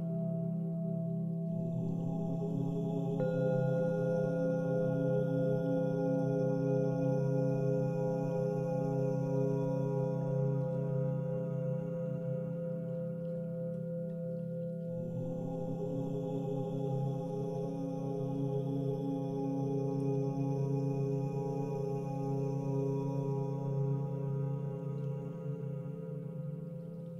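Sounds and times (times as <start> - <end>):
person chanting OM: 0.0 - 13.7, 14.8 - 27.1
singing bowls ringing: 3.2 - 14.9.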